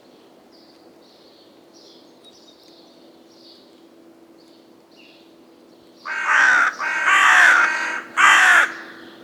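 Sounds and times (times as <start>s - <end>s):
black crow: 6.1s - 9.2s.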